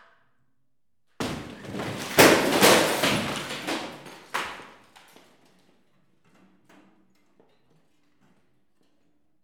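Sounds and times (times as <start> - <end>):
demolition hammer: 1.2 - 4.8.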